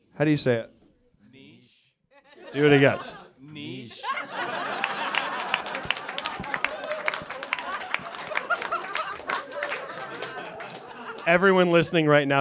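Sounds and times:
speech: 0.2s - 0.8s, 2.5s - 4.6s, 11.2s - 12.3s
laughter: 2.1s - 12.3s
audience applause: 4.3s - 11.5s.

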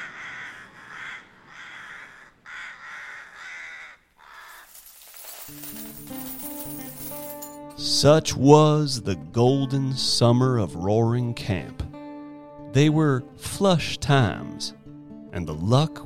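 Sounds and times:
rooks cawing: 0.0s - 4.9s
speech: 5.5s - 6.2s, 7.8s - 11.8s, 12.7s - 16.0s.

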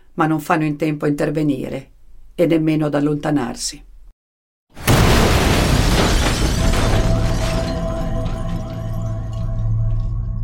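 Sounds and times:
speech: 0.2s - 3.9s
car bomb explosion: 4.8s - 10.3s.

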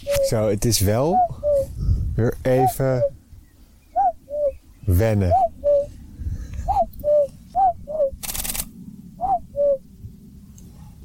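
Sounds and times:
common cuckoo giving its two-note call: 0.0s - 1.8s, 2.5s - 3.2s, 3.8s - 5.9s, 6.6s - 8.2s, 9.2s - 9.8s
faint low rumble: 0.0s - 11.0s
speech: 0.3s - 1.4s, 2.2s - 3.2s, 4.9s - 5.4s.

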